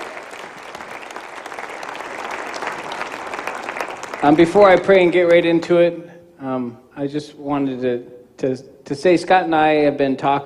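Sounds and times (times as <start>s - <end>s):
audience hand clapping: 0.0s - 5.7s
speech: 4.2s - 10.4s.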